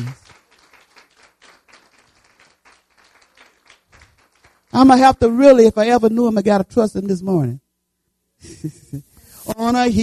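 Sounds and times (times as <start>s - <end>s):
audience clapping hands: 0.0s - 5.1s
speech: 4.8s - 7.6s, 8.4s - 10.0s.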